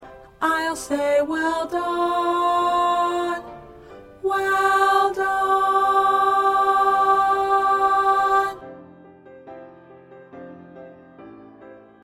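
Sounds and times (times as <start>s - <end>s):
tenor singing: 0.4s - 8.7s.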